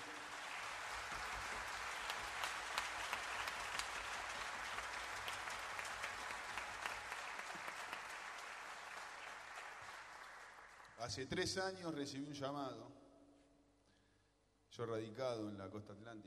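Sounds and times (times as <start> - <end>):
audience applause: 0.0 - 11.0
speech: 11.0 - 13.0, 14.8 - 16.2.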